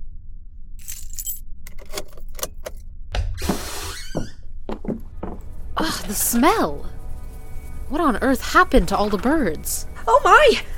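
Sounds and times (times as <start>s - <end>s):
low steady hum: 0.0s - 3.5s, 4.3s - 10.7s
keys jangling: 0.8s - 2.8s
speech: 5.8s - 6.9s, 7.9s - 10.7s.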